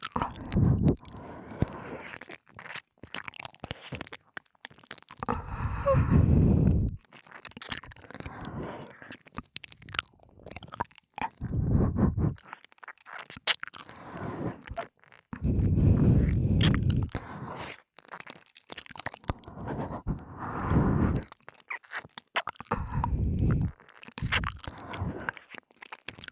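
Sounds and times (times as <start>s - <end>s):
ASMR ear licking sounds: 0.0s - 26.2s
ASMR breathy sighs: 0.2s - 2.2s, 5.3s - 7.0s, 8.2s - 9.2s, 11.4s - 12.4s, 13.8s - 14.8s, 15.4s - 17.8s, 19.2s - 21.3s, 22.7s - 25.5s.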